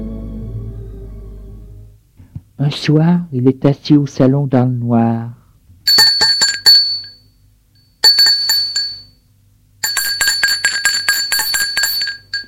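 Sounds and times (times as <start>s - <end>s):
speech: 2.7s - 5.4s
doorbell ringing: 5.9s - 9.2s, 9.8s - 12.4s.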